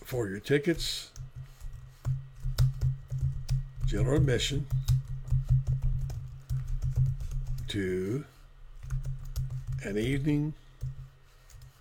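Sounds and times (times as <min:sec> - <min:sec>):
speech: 0:00.1 - 0:01.2, 0:03.9 - 0:04.9, 0:07.7 - 0:08.3, 0:09.8 - 0:10.6
typing on a computer keyboard: 0:00.7 - 0:07.8, 0:08.8 - 0:10.2, 0:10.8 - 0:11.7.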